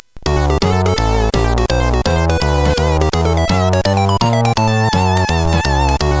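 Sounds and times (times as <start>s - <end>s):
jazz music on a SID CSG8580R5 chip: 0.1s - 6.1s.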